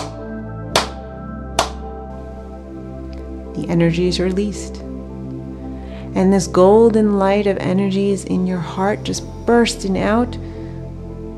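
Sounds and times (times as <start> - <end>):
sharp hand claps: 0.0 - 1.0, 1.6 - 1.8
steady sustained humming musical drone: 0.0 - 11.3
speech: 3.6 - 4.9, 6.2 - 10.5.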